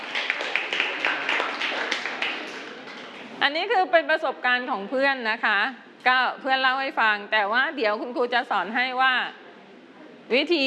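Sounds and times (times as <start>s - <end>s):
class of children clapping hands: 0.0s - 3.4s
speech: 3.4s - 9.4s, 10.3s - 10.6s.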